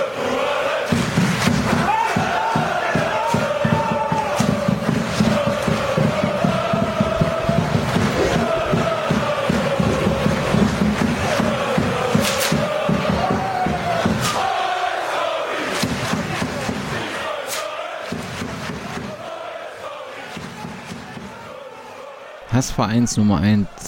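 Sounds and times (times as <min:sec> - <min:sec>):
football fans chanting in stadium stands: 0:00.0 - 0:23.8
sharp claps or thuds: 0:00.9 - 0:08.2, 0:08.8 - 0:14.5, 0:15.7 - 0:19.2
speech: 0:22.8 - 0:23.8.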